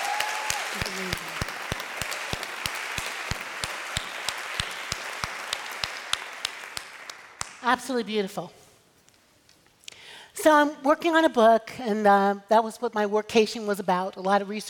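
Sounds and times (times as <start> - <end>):
audience applause: 0.0 - 7.5
speech: 0.8 - 1.4, 7.7 - 8.6, 10.4 - 14.6.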